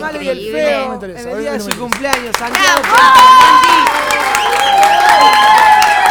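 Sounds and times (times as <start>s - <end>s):
speech: 0.0s - 4.2s
applause and cheering: 1.8s - 6.0s.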